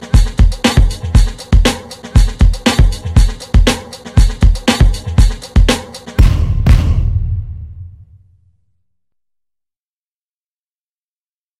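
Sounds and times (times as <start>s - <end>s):
beats loop track: 0.0s - 7.6s.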